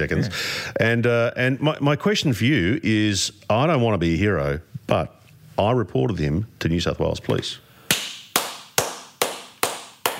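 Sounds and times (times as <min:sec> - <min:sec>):
speech: 0:00.0 - 0:07.6
hand claps: 0:07.9 - 0:10.1.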